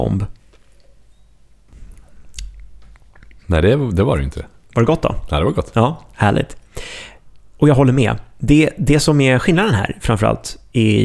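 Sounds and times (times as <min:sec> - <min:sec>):
speech: 0:00.0 - 0:00.4, 0:03.5 - 0:11.0
wet sipping and slurping tasting rosé wine with citrus notes: 0:01.7 - 0:03.5.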